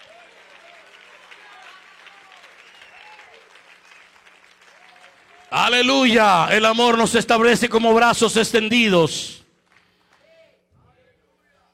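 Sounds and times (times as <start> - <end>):
audience applauding: 0.0 - 7.0
speech: 5.6 - 9.4.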